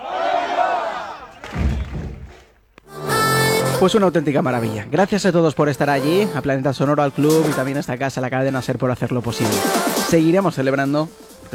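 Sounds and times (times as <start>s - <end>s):
crowd shouting a final cheer together: 0.0s - 1.5s
speech: 3.8s - 11.5s.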